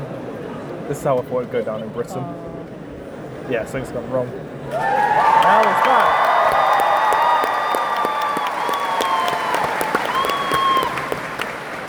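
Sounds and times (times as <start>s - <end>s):
speech: 0.9s - 2.6s, 3.5s - 6.2s
audience applause: 4.7s - 11.8s.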